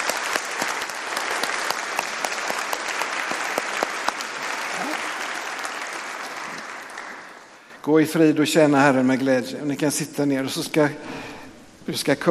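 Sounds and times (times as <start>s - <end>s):
audience applause: 0.0s - 7.7s
speech: 7.9s - 11.3s, 11.9s - 12.2s.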